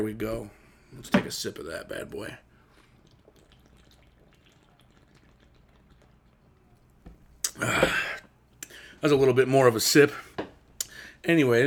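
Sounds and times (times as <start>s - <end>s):
speech: 0.0s - 2.5s, 7.6s - 8.0s, 9.0s - 10.3s, 11.2s - 11.6s
Coors Light beer poured over ice: 2.8s - 7.0s.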